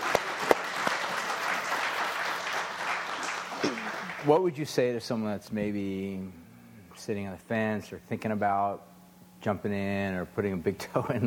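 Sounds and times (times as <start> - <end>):
audience applause: 0.0 - 4.4
speech: 4.2 - 6.4, 7.0 - 11.2.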